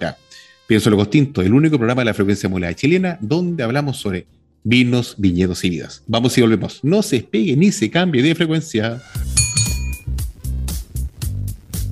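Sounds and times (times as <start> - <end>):
speech: 0.0 - 9.2
Riedel wine glasses clinking: 9.4 - 10.1.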